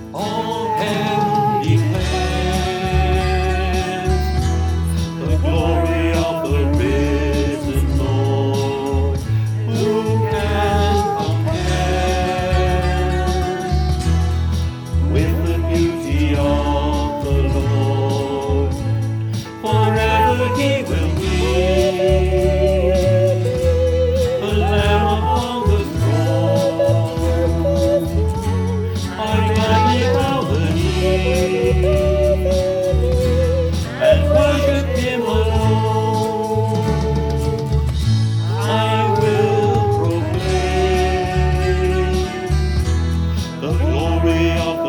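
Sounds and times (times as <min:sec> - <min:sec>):
choir singing: 0:00.1 - 0:37.9, 0:38.4 - 0:42.6, 0:43.6 - 0:44.8.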